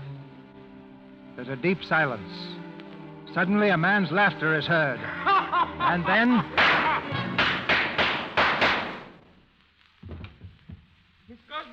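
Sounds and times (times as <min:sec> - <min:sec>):
speech: 0:01.4 - 0:02.6, 0:03.3 - 0:06.8
laughter: 0:05.0 - 0:07.4
gunshots in a radio drama: 0:06.6 - 0:09.2
soft thump: 0:10.0 - 0:10.9.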